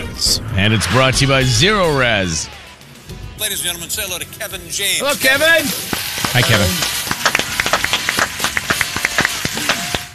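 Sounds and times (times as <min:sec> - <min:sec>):
speech: 0:00.2 - 0:02.6, 0:03.4 - 0:07.0
slow clap: 0:05.9 - 0:10.1.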